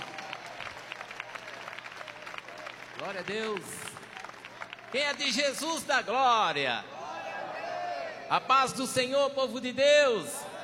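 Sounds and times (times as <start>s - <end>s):
audience clapping: 0.0s - 6.1s
speech: 3.0s - 3.9s, 4.9s - 6.9s, 8.3s - 10.4s.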